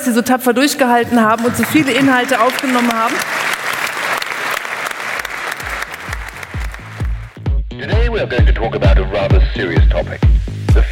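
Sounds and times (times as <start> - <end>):
speech: 0.0 - 3.4, 8.1 - 10.8
audience applause: 1.1 - 7.4.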